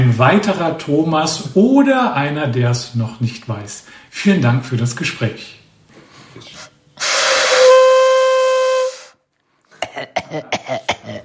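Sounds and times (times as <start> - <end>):
speech: 0.0 - 5.6
toy horn being blown: 7.0 - 9.2.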